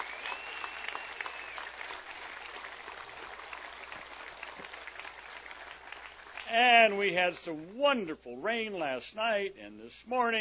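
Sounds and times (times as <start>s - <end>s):
crowd applauding: 0.0s - 6.9s
speech: 6.5s - 10.3s.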